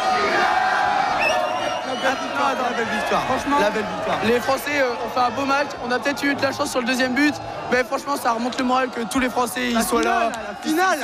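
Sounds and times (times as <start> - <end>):
crowd cheering and celebrating in street: 0.0 - 11.0
speech: 2.0 - 11.0.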